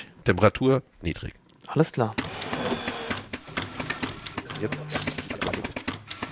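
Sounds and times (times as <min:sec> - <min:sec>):
speech: 0:00.2 - 0:02.4, 0:04.6 - 0:05.0
automatic coffee machine with grinder brewing a 35 ml espresso: 0:02.2 - 0:06.3.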